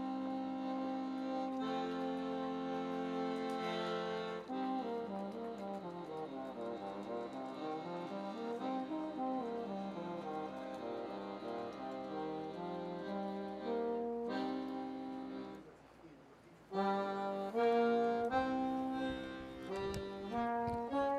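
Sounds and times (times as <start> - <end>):
street musician playing: 0.0 - 15.8, 16.7 - 21.1.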